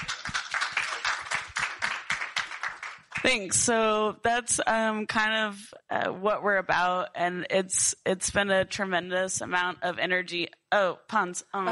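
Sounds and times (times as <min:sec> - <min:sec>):
audience clapping: 0:00.0 - 0:03.6
speech: 0:03.2 - 0:11.7.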